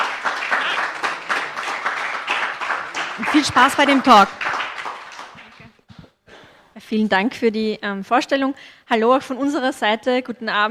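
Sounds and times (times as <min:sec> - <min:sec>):
audience applause for two speakers being introduced at a talk: 0:00.0 - 0:05.8
speech: 0:03.2 - 0:04.5, 0:06.9 - 0:10.6.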